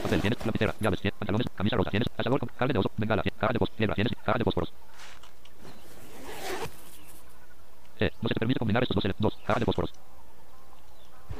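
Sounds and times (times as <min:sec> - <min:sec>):
backpack zipper being pulled open: 0:00.0 - 0:00.8, 0:05.6 - 0:07.2
speech: 0:00.0 - 0:04.8, 0:08.0 - 0:10.1.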